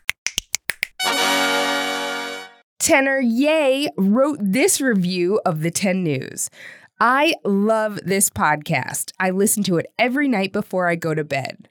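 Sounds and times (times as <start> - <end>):
finger snapping sound effect for a podcast segment: 0.0 - 1.0
bright sustained musical tone: 1.0 - 2.6
speech: 2.8 - 11.6.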